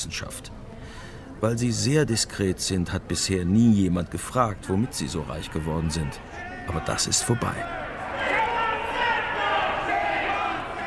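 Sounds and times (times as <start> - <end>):
speech: 0.0 - 0.5, 1.4 - 7.8
protesters shouting in museum hall: 5.2 - 10.8.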